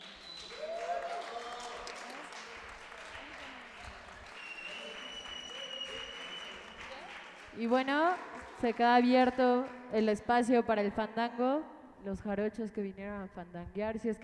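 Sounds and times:
crowd noise at a son jarocho music festival: 0:00.0 - 0:07.6
audience clapping at a son jarocho music festival: 0:00.0 - 0:09.9
speech: 0:07.6 - 0:14.2.

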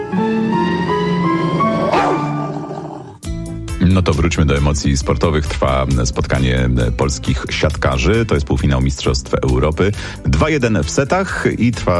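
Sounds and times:
pack of hunting hounds baying and barking on the chase across moorland: 0:00.2 - 0:03.0
speech: 0:04.0 - 0:11.9.

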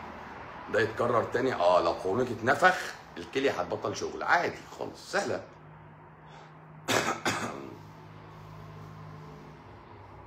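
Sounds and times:
speech: 0:00.7 - 0:05.6
person coughing from smoke: 0:06.9 - 0:07.8.

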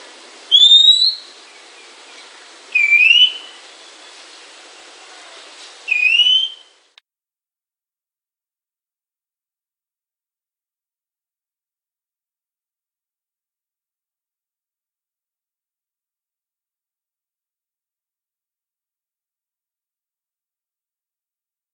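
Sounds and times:
Oriental magpie-robin calls: 0:00.5 - 0:01.3, 0:02.7 - 0:03.6, 0:05.9 - 0:06.8.

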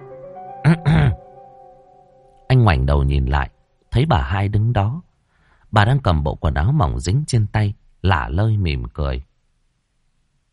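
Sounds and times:
woman clearing her throat: 0:00.7 - 0:01.2
speech: 0:02.6 - 0:05.1, 0:05.7 - 0:09.3.

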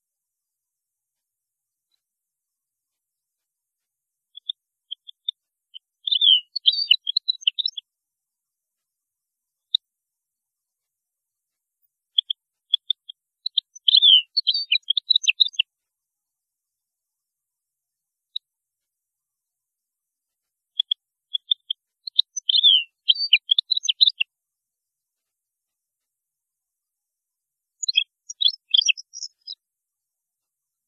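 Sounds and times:
European goldfinch singing: 0:04.4 - 0:07.8, 0:12.2 - 0:15.6, 0:20.8 - 0:24.2, 0:27.8 - 0:29.6.

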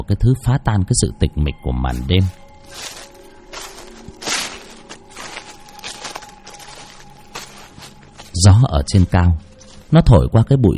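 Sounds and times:
speech: 0:00.0 - 0:03.1, 0:08.4 - 0:10.7
slippers stepping on dry fallen leaves: 0:01.9 - 0:10.2
slippers shuffling on concrete: 0:02.0 - 0:10.0.

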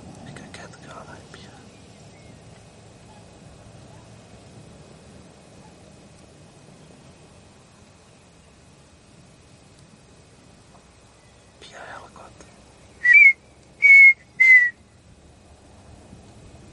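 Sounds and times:
partridge song phrase of three whistles: 0:12.9 - 0:14.8.

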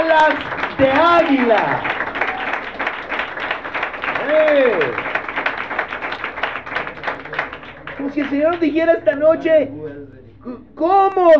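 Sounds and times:
audience applauding: 0:00.0 - 0:09.1
speech: 0:00.2 - 0:02.0, 0:04.3 - 0:05.1, 0:08.0 - 0:11.3.

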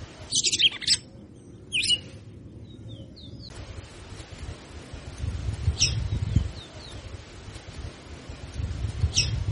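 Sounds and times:
red-cowled cardinal singing chirped notes: 0:00.2 - 0:03.6, 0:05.8 - 0:07.2, 0:09.1 - 0:09.4.

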